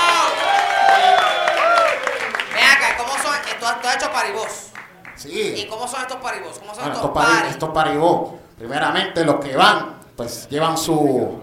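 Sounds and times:
audience applause: 0:00.0 - 0:05.3
speech: 0:03.9 - 0:11.4.

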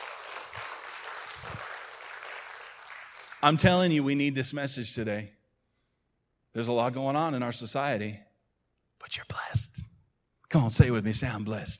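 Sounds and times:
crowd applauding: 0:00.0 - 0:03.9
speech: 0:03.4 - 0:05.4, 0:06.6 - 0:08.3, 0:09.0 - 0:09.7, 0:10.5 - 0:11.7.

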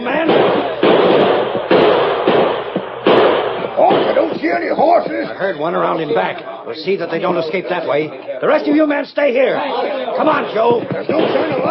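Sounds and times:
gunfire volley: 0:00.0 - 0:05.1, 0:10.4 - 0:11.6
speech: 0:04.6 - 0:11.6.

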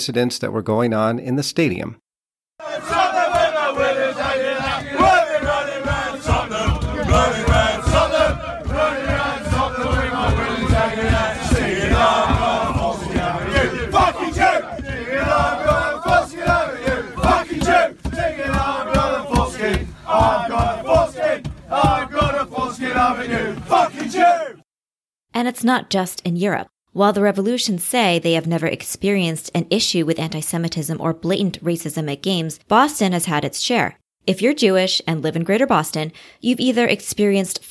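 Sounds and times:
speech: 0:00.0 - 0:02.0, 0:25.4 - 0:37.7
male voices chanting in unison: 0:02.6 - 0:24.6
people shouting: 0:02.6 - 0:24.6
steady pulsing beat: 0:02.8 - 0:24.2.

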